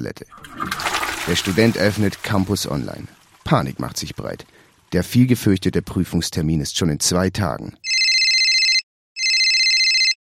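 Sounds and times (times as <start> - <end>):
speech: 0.0 - 7.9
mobile phone ringtone with pulsing high electronic tone: 7.9 - 10.2.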